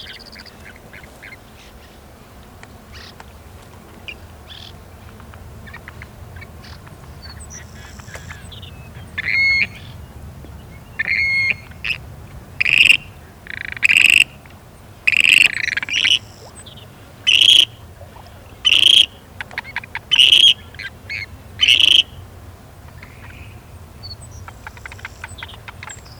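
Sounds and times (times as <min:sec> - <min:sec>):
grebe calling with short hooked notes: 0:04.1 - 0:04.9, 0:05.6 - 0:10.1, 0:10.7 - 0:22.2, 0:22.9 - 0:26.1.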